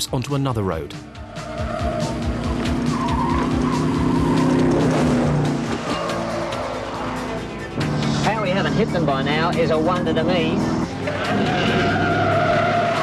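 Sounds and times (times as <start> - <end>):
speech: 0.0 - 1.7, 8.6 - 11.9
car engine droning while driving close behind kids on bicycles: 1.0 - 13.0
car tires squealing and skidding: 1.1 - 7.4, 9.3 - 13.0.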